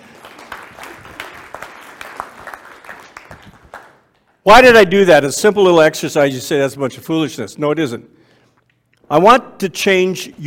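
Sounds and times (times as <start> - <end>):
audience applause: 0.0 - 4.1
speech: 4.4 - 8.2, 9.1 - 10.4.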